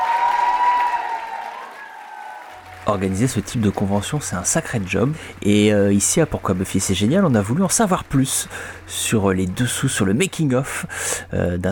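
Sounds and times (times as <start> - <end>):
convention audience cheering and applauding American guests at a fan event: 0.0 - 10.1
speech: 2.9 - 11.7.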